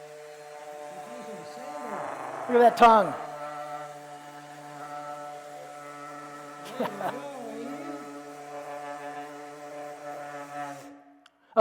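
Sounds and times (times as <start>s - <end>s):
power sander running: 0.0s - 10.8s
laughter: 1.0s - 3.4s, 6.6s - 8.2s
speech: 2.5s - 3.2s, 6.8s - 7.3s.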